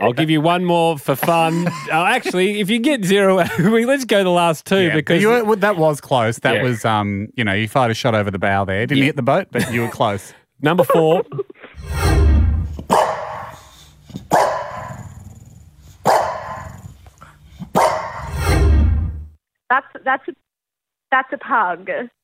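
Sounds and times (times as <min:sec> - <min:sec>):
speech: 0:00.0 - 0:13.1, 0:19.7 - 0:20.4, 0:21.1 - 0:22.2
laughter: 0:01.1 - 0:03.9, 0:04.9 - 0:06.0, 0:09.6 - 0:11.8
French bulldog barking and growling: 0:12.8 - 0:18.5.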